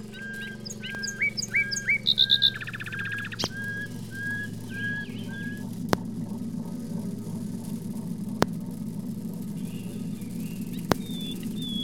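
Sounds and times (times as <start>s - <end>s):
bird chirps and whistles: 0.0s - 5.7s, 9.6s - 11.8s
low hum: 0.0s - 11.8s.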